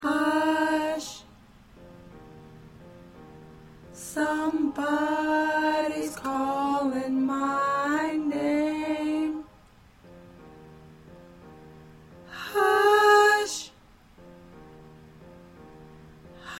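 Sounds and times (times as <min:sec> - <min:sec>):
alto choir part singing: 0:00.0 - 0:01.3, 0:03.9 - 0:09.5, 0:12.3 - 0:13.7.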